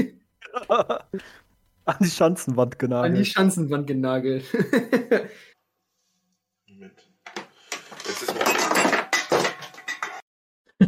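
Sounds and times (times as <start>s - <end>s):
speech: 0.0s - 5.5s
laughter: 0.4s - 1.2s, 4.5s - 5.5s
clattering of dropped empty cans: 7.3s - 10.2s.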